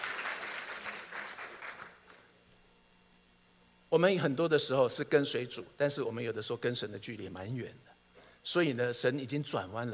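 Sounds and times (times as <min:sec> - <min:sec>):
audience applause: 0:00.0 - 0:02.2
speech: 0:03.9 - 0:09.9.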